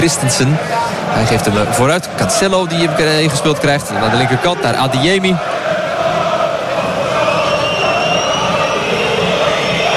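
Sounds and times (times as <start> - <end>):
speech: 0.0 - 6.1
home crowd whistling in protest: 5.6 - 9.9.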